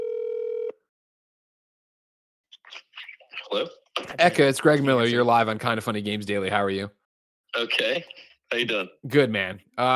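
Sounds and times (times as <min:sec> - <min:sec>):
telephone ringing: 0:00.0 - 0:00.8
speech: 0:02.6 - 0:07.0, 0:07.6 - 0:09.9.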